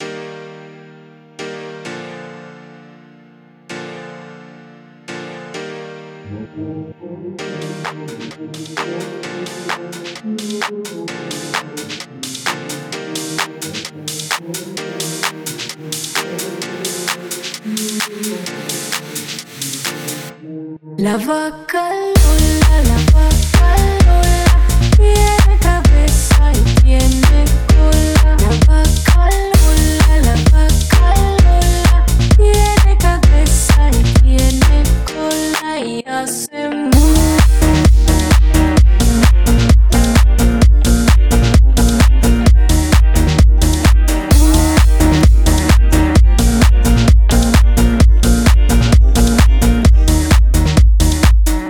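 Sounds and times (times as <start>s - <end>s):
electronic dance music: 7.4s - 20.3s, 22.2s - 35.7s, 36.9s - 51.6s.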